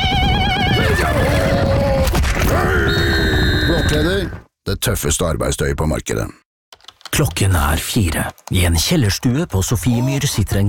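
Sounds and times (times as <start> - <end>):
horse neighing: 0.0 - 4.4
speech: 4.0 - 6.4, 7.1 - 10.6.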